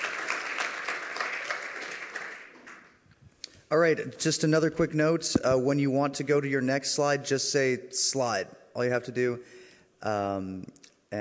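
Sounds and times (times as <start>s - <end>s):
crowd applause: 0.0s - 2.9s
speech: 3.7s - 11.1s.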